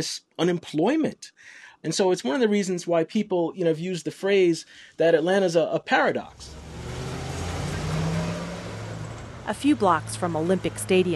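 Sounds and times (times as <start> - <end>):
speech: 0.0 - 6.6, 9.5 - 11.1
car driving through the Pittsburgh neighborhood of Atlanta off McDaniel Street: 6.2 - 11.1.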